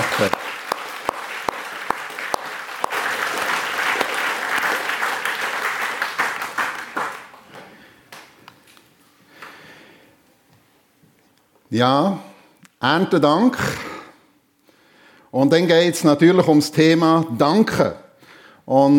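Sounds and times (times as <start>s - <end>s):
applause: 0.0s - 8.3s
speech: 0.2s - 0.5s, 11.7s - 13.8s, 15.3s - 18.0s, 18.7s - 18.9s.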